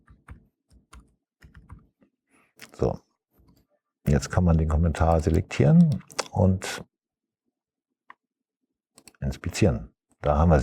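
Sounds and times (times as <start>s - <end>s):
code comment being typed on a computer keyboard: 0.0s - 1.8s, 5.0s - 6.3s
speech: 2.7s - 3.0s, 4.1s - 6.9s, 9.3s - 10.6s.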